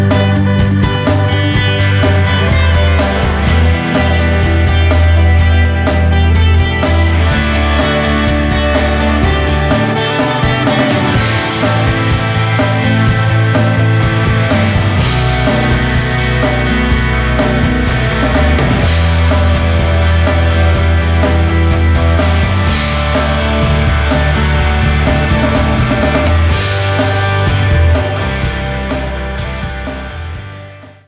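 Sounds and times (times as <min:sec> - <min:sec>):
country music: 0:00.0 - 0:31.0.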